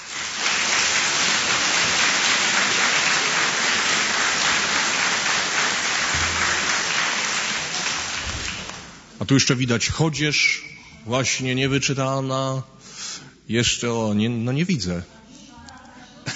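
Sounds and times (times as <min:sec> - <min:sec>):
applause: 0:00.0 - 0:09.2
speech: 0:09.3 - 0:12.8, 0:13.5 - 0:15.2.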